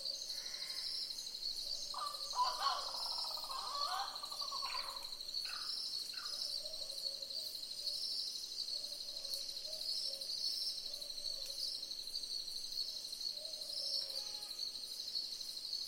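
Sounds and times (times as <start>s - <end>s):
Southern boobook owls hooting in a chorus: 2.0s - 5.0s.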